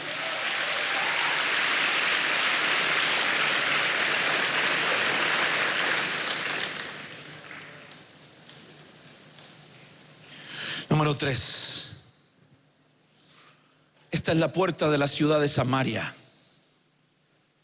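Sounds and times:
crowd clapping: 0.0 - 8.1
speech: 11.1 - 11.7, 14.3 - 16.2.

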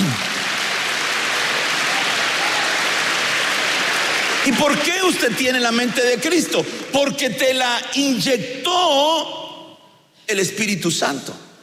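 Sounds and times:
audience clapping: 0.0 - 7.2
speech: 4.4 - 9.4, 10.3 - 11.4.

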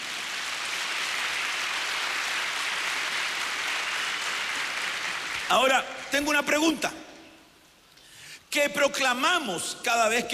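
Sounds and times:
crowd clapping: 0.0 - 6.3
speech: 5.5 - 7.1, 8.5 - 10.3.

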